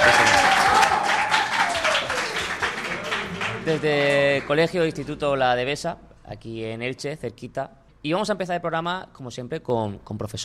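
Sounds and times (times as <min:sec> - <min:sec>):
audience applause: 0:00.0 - 0:05.1
speech: 0:03.7 - 0:10.4.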